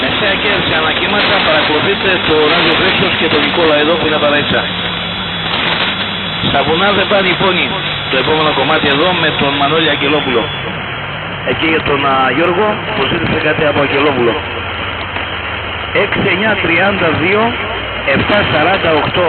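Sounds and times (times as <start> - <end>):
pirate radio broadcast on 1639 kHz: 0.0 - 19.2.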